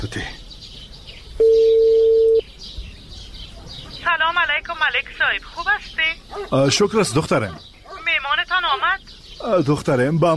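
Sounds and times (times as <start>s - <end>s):
speech: 0.0s - 0.4s, 4.6s - 7.7s, 8.7s - 10.3s
birds chirping: 0.0s - 10.3s
telephone tone during a mobile phone call: 1.4s - 2.4s.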